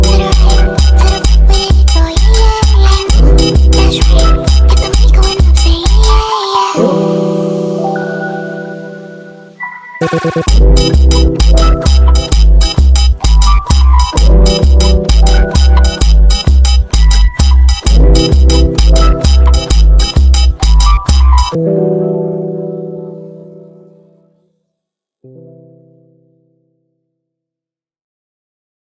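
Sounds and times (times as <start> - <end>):
funk phonk music: 0.0 - 21.6.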